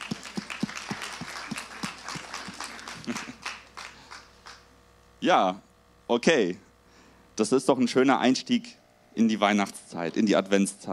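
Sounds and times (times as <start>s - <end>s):
small group clapping: 0.0s - 4.7s
laughter: 0.1s - 3.5s
speech: 5.2s - 6.7s, 7.4s - 10.9s.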